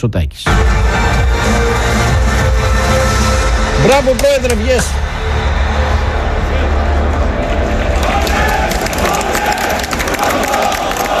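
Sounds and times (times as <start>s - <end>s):
speech: 0.0s - 2.0s, 3.8s - 5.4s
crowd shouting at political rally: 0.5s - 11.1s
scattered clapping: 7.1s - 11.1s.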